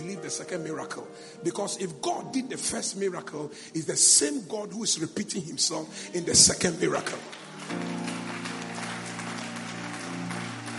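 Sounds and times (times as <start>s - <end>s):
speech: 0.0s - 8.3s
audience clapping: 6.6s - 10.7s
low steady musical drone: 7.6s - 10.7s.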